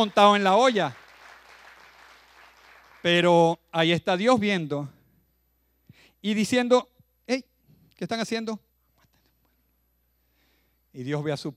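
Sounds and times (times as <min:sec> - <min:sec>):
speech: 0:00.0 - 0:01.0, 0:03.0 - 0:05.0, 0:06.2 - 0:08.6, 0:11.0 - 0:11.5
audience applause: 0:00.0 - 0:03.1.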